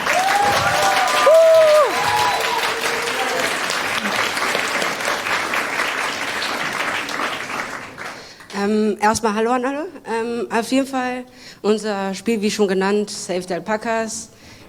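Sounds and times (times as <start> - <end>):
high-pitched cheer: 0.0 - 6.9
audience applause: 0.0 - 8.5
speech: 8.6 - 14.4.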